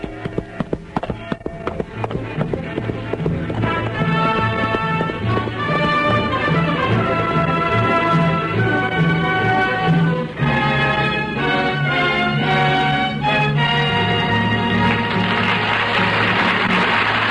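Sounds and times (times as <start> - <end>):
horse hooves galloping: 0.0 - 9.2
orchestral music: 0.0 - 17.3.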